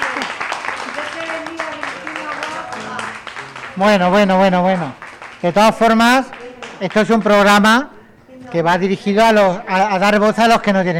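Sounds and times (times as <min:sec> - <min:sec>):
applause: 0:00.0 - 0:07.6
speech: 0:03.8 - 0:10.9.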